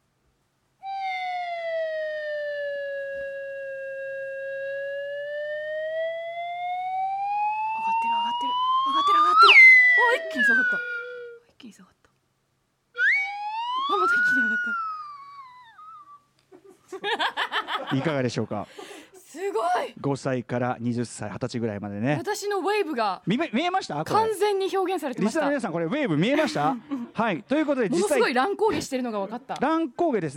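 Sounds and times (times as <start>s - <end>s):
wave whistle: 0.8s - 11.4s, 13.0s - 16.3s
speech: 10.4s - 10.9s, 11.7s - 12.0s, 17.9s - 19.0s, 19.7s - 30.3s
laughter: 16.5s - 19.0s, 26.2s - 27.2s.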